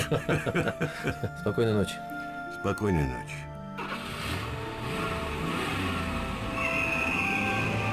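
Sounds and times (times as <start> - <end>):
laughter: 0.0 - 1.6
speech: 0.1 - 3.5
car pulling away sharply from in front of a house in Altenberg: 3.8 - 7.9.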